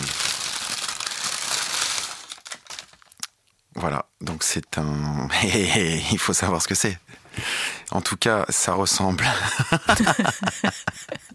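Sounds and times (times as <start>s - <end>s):
small paper bakery bag being opened: 0.0s - 3.2s
speech: 3.8s - 10.9s
laughter: 9.2s - 11.3s.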